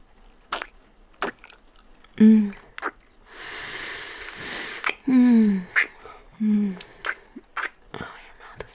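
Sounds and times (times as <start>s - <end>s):
speech: 2.2s - 2.6s
kissing: 2.8s - 3.2s, 4.2s - 5.1s, 5.7s - 6.2s, 6.8s - 7.8s.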